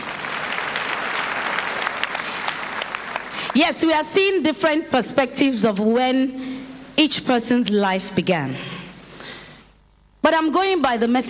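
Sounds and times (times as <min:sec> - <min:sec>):
audience clapping: 0:00.0 - 0:03.6
speech: 0:03.6 - 0:08.7, 0:10.3 - 0:11.2.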